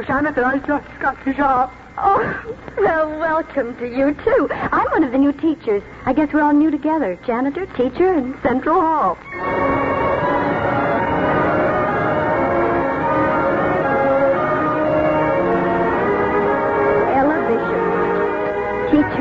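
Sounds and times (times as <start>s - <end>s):
speech: 0.0s - 9.7s
school bell ringing: 9.3s - 19.2s.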